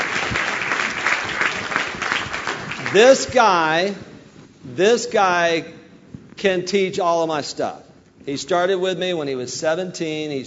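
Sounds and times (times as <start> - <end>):
audience applause: 0.0 - 3.3
speech: 2.9 - 4.1, 4.7 - 5.8, 6.4 - 10.4.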